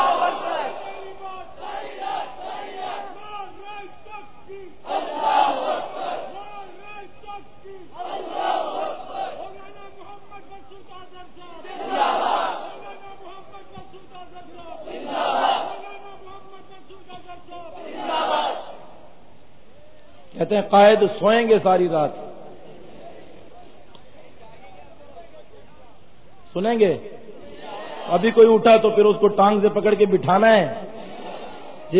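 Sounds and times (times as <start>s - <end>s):
large crowd chanting Allahu Akbar in reply to Nara-e-Takbeer: 0.0s - 19.2s, 27.4s - 28.5s, 30.8s - 31.9s
speech: 20.5s - 22.2s, 26.6s - 27.1s, 28.1s - 30.8s.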